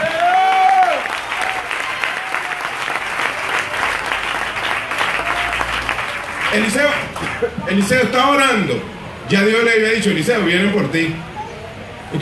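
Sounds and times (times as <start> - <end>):
audience applauding: 0.0 - 7.9
speech: 6.6 - 11.3.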